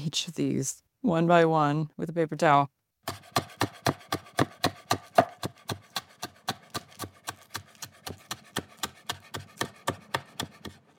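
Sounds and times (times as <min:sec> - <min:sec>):
speech: 0:00.0 - 0:03.4
knife chopping chives: 0:03.1 - 0:10.9.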